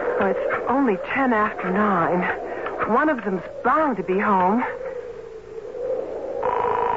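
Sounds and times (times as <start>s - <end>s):
speech: 0.2s - 4.8s
steady electronic tone over the telephone line: 6.4s - 6.9s.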